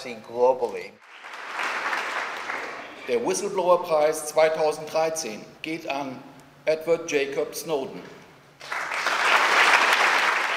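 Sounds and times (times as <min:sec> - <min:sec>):
speech: 0:00.0 - 0:01.2, 0:03.1 - 0:08.8
standing ovation at a whistleblower award ceremony: 0:01.0 - 0:03.2, 0:08.6 - 0:10.5.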